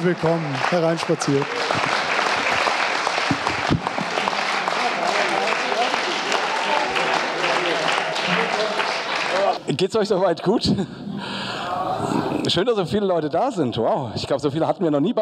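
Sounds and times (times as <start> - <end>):
speech: 0.0 - 2.1, 9.8 - 11.3, 12.4 - 15.2
crowd voices and cheers: 0.0 - 9.7
live audience applause: 0.0 - 9.7.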